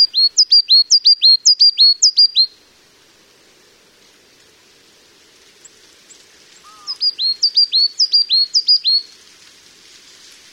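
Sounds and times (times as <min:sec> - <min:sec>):
coal tit singing: 0:00.0 - 0:02.6, 0:05.6 - 0:09.2.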